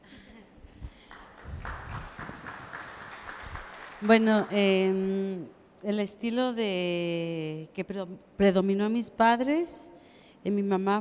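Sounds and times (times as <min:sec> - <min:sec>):
group applauding: 0:00.8 - 0:05.0
speech: 0:04.0 - 0:11.0.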